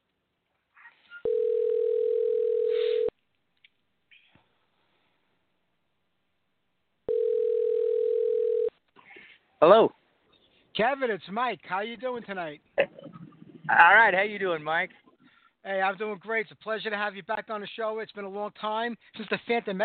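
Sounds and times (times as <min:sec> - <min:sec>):
telephone dial tone: 0:01.3 - 0:03.1, 0:07.1 - 0:08.7
speech: 0:09.6 - 0:10.0, 0:10.8 - 0:12.7, 0:13.7 - 0:15.0, 0:15.6 - 0:19.8.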